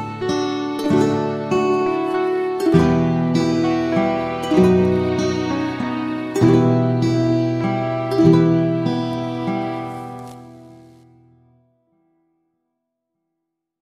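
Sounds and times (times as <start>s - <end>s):
ukulele melody: 0.0s - 11.0s.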